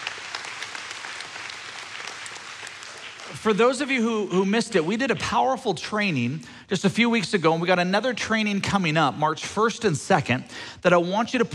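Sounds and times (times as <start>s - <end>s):
audience clapping: 0.0s - 3.9s
speech: 3.4s - 11.5s.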